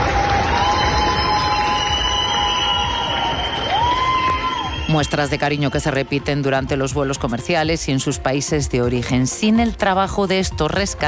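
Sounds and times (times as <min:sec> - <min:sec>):
crowd cheering and clapping at an airport: 0:00.0 - 0:06.2
high whistles: 0:00.5 - 0:05.8
speech: 0:04.9 - 0:11.0.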